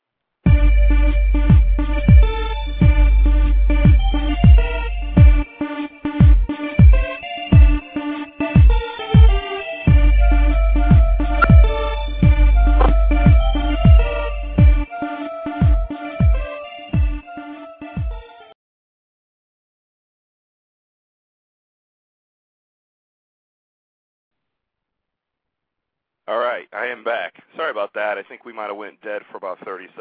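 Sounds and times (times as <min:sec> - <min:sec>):
upbeat podcast intro music with bass thumps and synth chords: 0:00.5 - 0:18.2
speech: 0:26.3 - 0:29.9.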